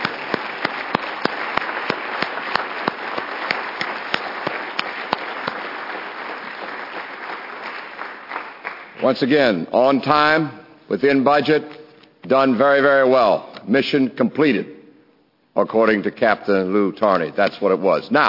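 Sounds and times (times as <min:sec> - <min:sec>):
audience applause: 0:00.0 - 0:09.0
speech: 0:09.0 - 0:14.7, 0:15.6 - 0:18.2.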